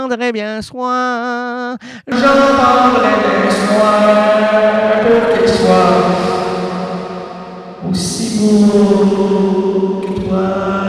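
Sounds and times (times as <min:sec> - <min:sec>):
speech: 0:00.0 - 0:06.4, 0:07.8 - 0:10.8
heavily sustained tones with a long washy tail: 0:02.1 - 0:10.8.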